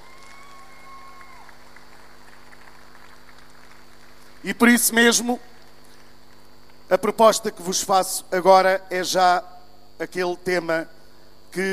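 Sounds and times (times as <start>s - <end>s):
audience applause: 0.0s - 4.7s
speech: 4.4s - 5.5s, 6.9s - 11.7s.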